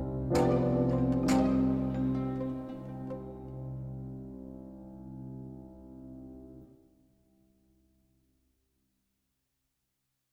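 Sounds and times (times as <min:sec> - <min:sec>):
duduk variation: 0:00.0 - 0:03.9.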